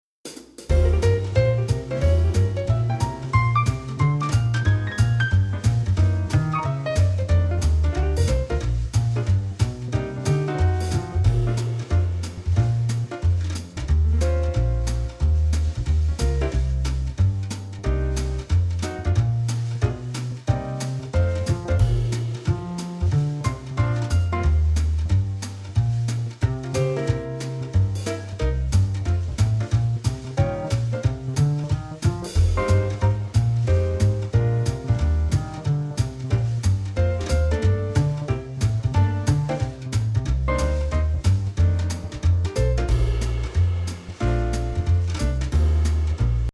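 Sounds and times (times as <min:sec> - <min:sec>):
jazz music: 0:00.3 - 0:46.5.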